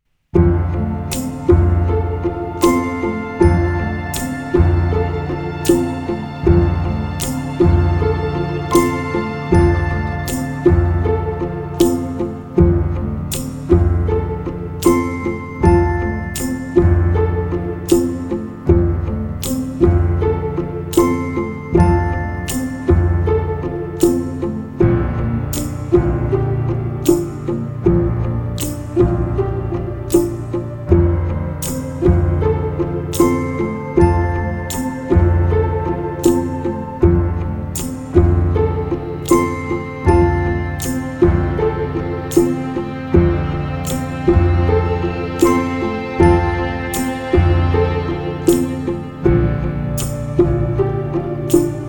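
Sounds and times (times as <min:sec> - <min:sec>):
ending credits major chord music: 0:00.4 - 0:51.8.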